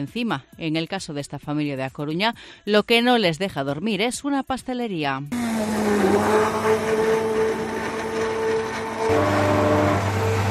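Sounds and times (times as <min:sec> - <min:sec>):
speech: 0:00.0 - 0:07.2
heavy industrial mixer or dough kneader droning: 0:05.3 - 0:10.4.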